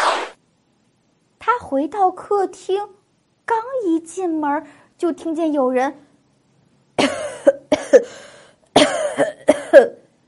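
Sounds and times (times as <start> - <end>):
speech: 1.6 - 6.1
deep heavy cough: 7.0 - 10.0.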